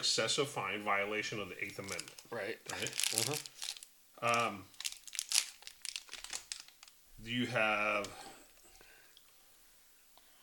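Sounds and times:
speech: 0:00.0 - 0:04.8, 0:07.2 - 0:08.3
food wrapper crinkling: 0:01.6 - 0:07.0.

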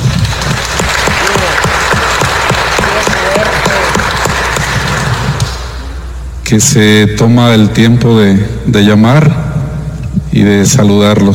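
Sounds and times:
applause: 0:00.0 - 0:05.8
speech: 0:06.5 - 0:09.5, 0:10.3 - 0:11.3.

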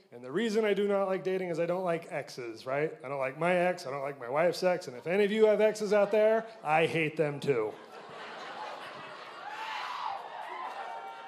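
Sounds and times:
speech: 0:00.1 - 0:07.9
audience cheering and laughing: 0:07.5 - 0:11.2
person whooping: 0:09.4 - 0:11.2.

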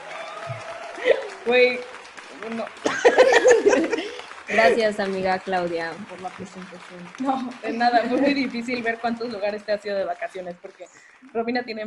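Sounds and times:
applause: 0:00.0 - 0:11.8
laughter: 0:00.9 - 0:01.5, 0:02.8 - 0:05.1, 0:07.2 - 0:09.0
speech: 0:01.0 - 0:11.8.

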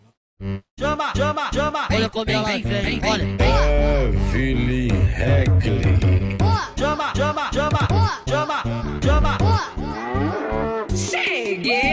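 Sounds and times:
speech: 0:00.4 - 0:09.4
cow mooing: 0:09.8 - 0:11.2.

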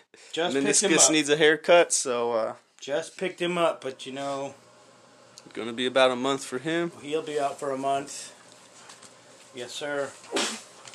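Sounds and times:
speech: 0:00.2 - 0:04.6, 0:05.5 - 0:08.4, 0:09.5 - 0:10.5
person sneezing: 0:10.3 - 0:10.8.

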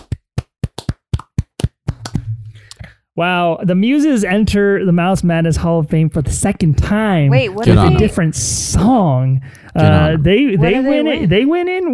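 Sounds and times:
hands clapping: 0:00.0 - 0:02.9
speech: 0:03.2 - 0:11.9.

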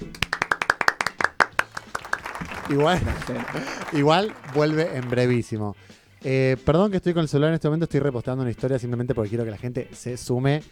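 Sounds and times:
applause for a departing colleague: 0:00.0 - 0:05.6
laughter: 0:01.1 - 0:05.5
speech: 0:02.7 - 0:10.7.

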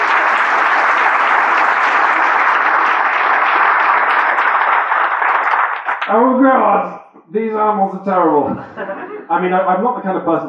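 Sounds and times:
crowd applauding: 0:00.0 - 0:06.4
speech: 0:06.1 - 0:10.4
laughter: 0:08.4 - 0:09.4.

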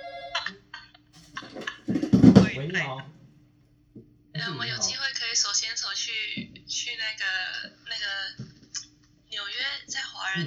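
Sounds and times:
telephone ringing: 0:00.0 - 0:00.6
speech: 0:02.6 - 0:03.2, 0:04.4 - 0:08.5, 0:09.4 - 0:10.4.

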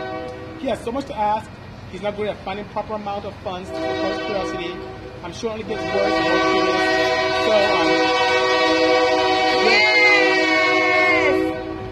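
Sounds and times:
train horn sounding as a train goes by: 0:00.0 - 0:00.6, 0:03.6 - 0:11.8
speech: 0:00.6 - 0:08.2.

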